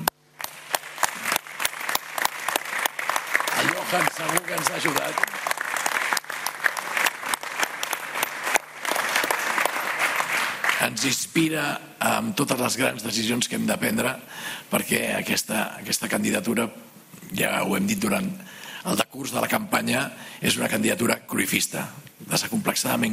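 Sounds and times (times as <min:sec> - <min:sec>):
audience applause: 0:00.4 - 0:10.9
speech: 0:03.9 - 0:05.4, 0:10.8 - 0:23.1.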